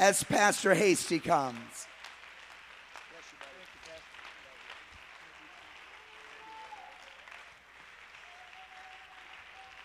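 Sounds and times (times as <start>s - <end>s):
speech: 0.0s - 1.9s
crowd clapping: 0.0s - 9.8s.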